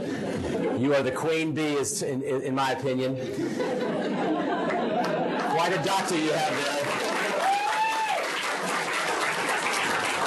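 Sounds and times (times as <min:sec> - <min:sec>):
laughter: 0:00.0 - 0:01.4, 0:03.2 - 0:07.6
speech: 0:00.8 - 0:06.9
audience applause: 0:04.6 - 0:10.2.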